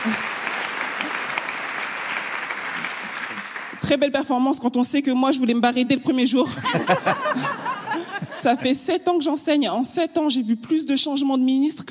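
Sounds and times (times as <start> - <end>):
audience applause: 0.0 - 3.9
speech: 3.9 - 7.7, 8.4 - 11.8
laughter: 6.4 - 8.9.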